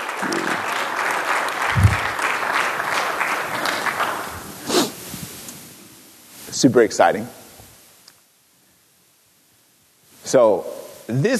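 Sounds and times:
audience applauding: 0.0 - 4.7
speech: 6.6 - 7.4, 10.3 - 11.3.

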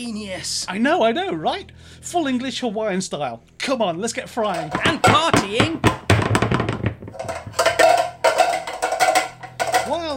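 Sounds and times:
speech: 0.0 - 6.0
pans banging: 4.4 - 10.1.

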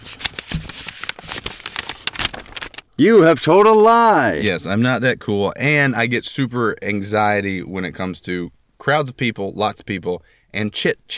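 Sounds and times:
paper envelope being opened: 0.0 - 3.0
speech: 3.0 - 11.1.

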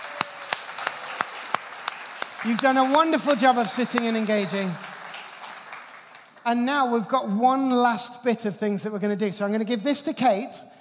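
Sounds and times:
round of applause: 0.0 - 6.4
speech: 2.4 - 4.8, 6.4 - 10.7.

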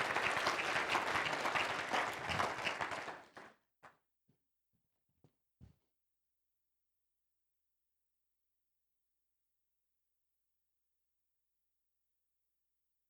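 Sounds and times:
audience applause welcoming a speaker before a sermon: 0.0 - 3.5.

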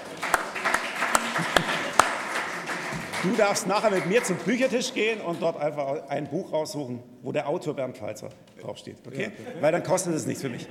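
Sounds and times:
applause: 0.0 - 5.4
laughter: 1.0 - 2.3
speech: 3.2 - 10.7.

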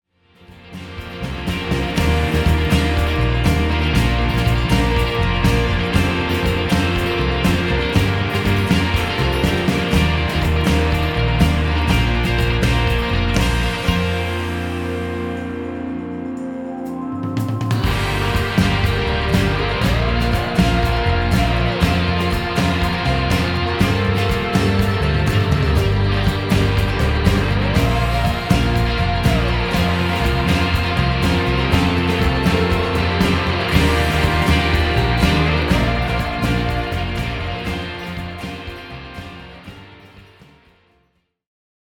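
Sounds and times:
instrumental music: 0.4 - 40.9.

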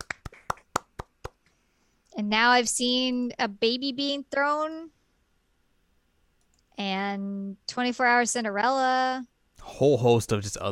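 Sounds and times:
clapping: 0.0 - 1.4
speech: 2.2 - 5.0, 6.8 - 10.7.

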